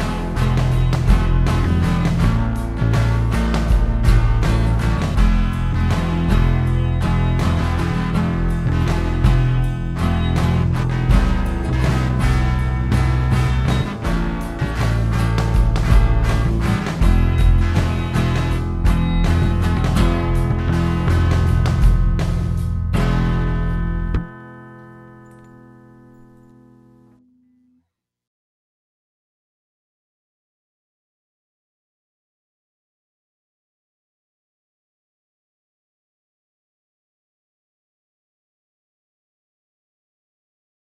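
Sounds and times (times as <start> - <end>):
blues music: 0.0 - 27.2.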